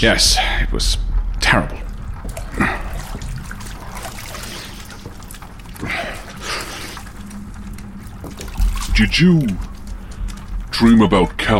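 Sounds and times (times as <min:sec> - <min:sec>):
speech: 0:00.0 - 0:01.8, 0:09.0 - 0:09.7, 0:10.8 - 0:11.5
water splashing as someone washes up: 0:01.0 - 0:11.5.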